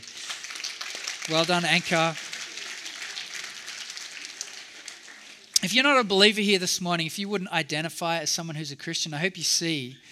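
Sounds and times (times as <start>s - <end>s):
audience applause: 0.0s - 6.3s
speech: 1.3s - 2.2s, 5.6s - 10.1s.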